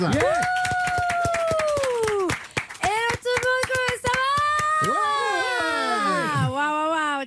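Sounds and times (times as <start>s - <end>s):
studio audience whooping and cheering: 0.0s - 2.4s, 4.0s - 6.6s
studio audience clapping: 0.0s - 6.3s.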